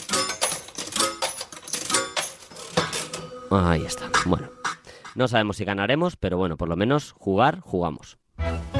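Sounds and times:
coins being dropped: 0.0s - 3.4s
speech: 3.5s - 4.6s, 5.2s - 8.6s.

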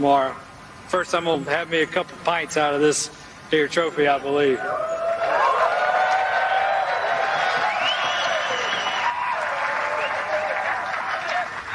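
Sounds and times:
speech: 0.0s - 5.0s
crowd clapping: 5.0s - 11.7s
voices and faint whistles: 7.4s - 9.2s.

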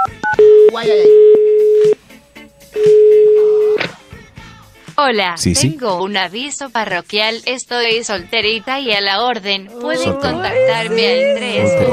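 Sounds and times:
phone dial beeps while calling an institute: 0.0s - 2.0s, 2.8s - 3.8s
speech: 0.8s - 1.2s, 5.0s - 11.9s.

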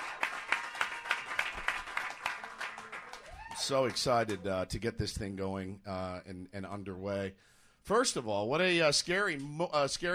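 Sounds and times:
applause: 0.0s - 4.5s
speech: 3.6s - 10.1s.

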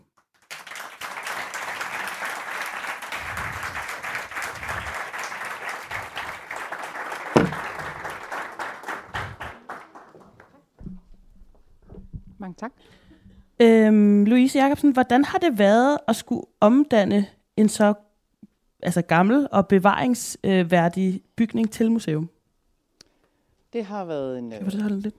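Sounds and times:
applause for the director of the Museum of Copenhagen: 0.0s - 10.8s
speech: 12.5s - 13.0s, 13.6s - 18.0s, 18.8s - 22.4s, 23.7s - 25.1s.

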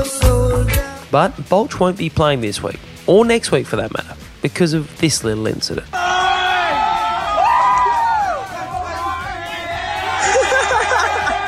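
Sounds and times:
speech: 0.0s - 6.0s
laughter: 6.0s - 11.4s
spectators cheering and whooping at football match: 6.0s - 11.4s.

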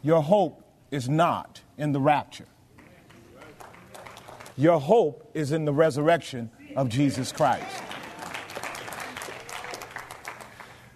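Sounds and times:
speech: 0.0s - 2.6s, 4.6s - 7.8s
audience clapping: 2.8s - 4.8s, 7.1s - 10.9s.

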